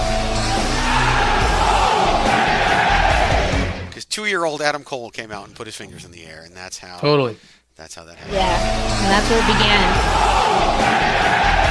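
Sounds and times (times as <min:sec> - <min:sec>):
crowd of thousands chanting in unison: 0:00.6 - 0:03.7, 0:08.3 - 0:11.6
speech: 0:04.2 - 0:11.6.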